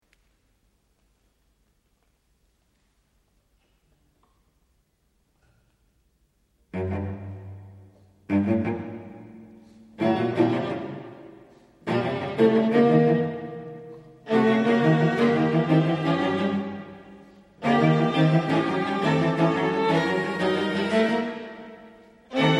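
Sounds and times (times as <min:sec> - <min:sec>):
string quartet: 0:06.7 - 0:22.5.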